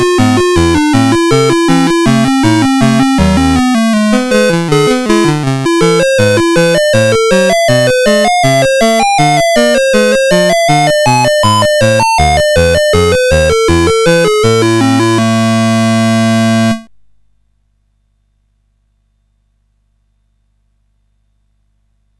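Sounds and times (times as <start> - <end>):
SID CSG8580R5 chip game music: 0.0 - 16.9.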